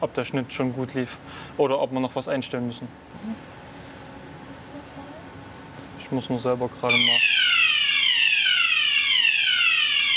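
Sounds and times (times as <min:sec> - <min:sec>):
speech: 0:00.0 - 0:03.6, 0:06.1 - 0:07.4
fire alarm ringing: 0:06.9 - 0:10.1.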